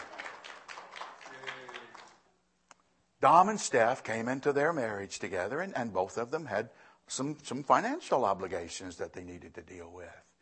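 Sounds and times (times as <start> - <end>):
audience applause: 0.0 - 2.2
speech: 3.2 - 10.3.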